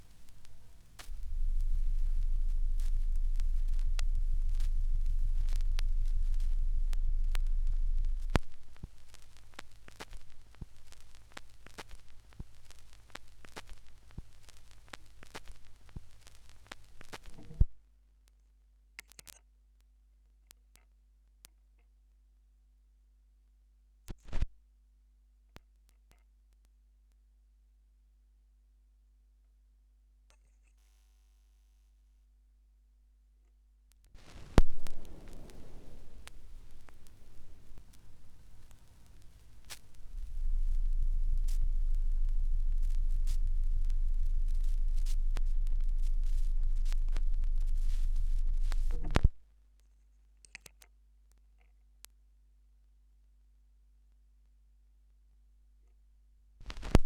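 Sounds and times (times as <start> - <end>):
vinyl record noise: 0.0 - 17.7, 24.1 - 24.5, 33.9 - 49.5, 56.6 - 57.0.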